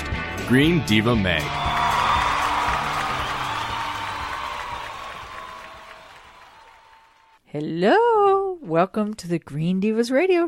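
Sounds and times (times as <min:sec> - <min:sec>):
speech: 0:00.5 - 0:01.7, 0:07.5 - 0:10.4
crowd cheering and applauding: 0:01.4 - 0:07.4
scattered whoops: 0:01.4 - 0:07.4.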